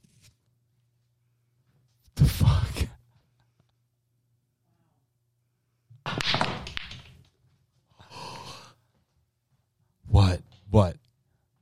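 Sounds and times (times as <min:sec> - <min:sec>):
pool balls cracking on a nine-ball break soundboard effect: 0:06.1 - 0:07.4
speech: 0:10.7 - 0:11.0.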